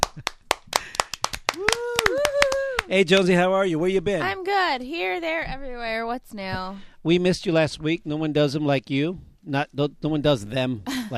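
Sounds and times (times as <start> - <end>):
crisp hand claps: 0.0 - 3.3
speech: 2.9 - 11.1.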